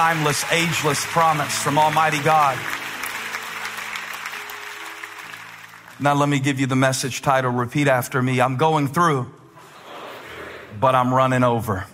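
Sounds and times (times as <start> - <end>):
speech: 0.0 - 2.8, 6.0 - 9.4, 10.8 - 11.9
audience clapping hands: 0.0 - 6.8.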